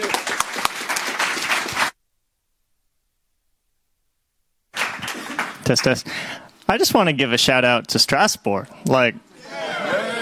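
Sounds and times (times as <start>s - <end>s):
audience applause: 0.0s - 2.0s, 4.8s - 6.0s
speech: 5.7s - 9.6s.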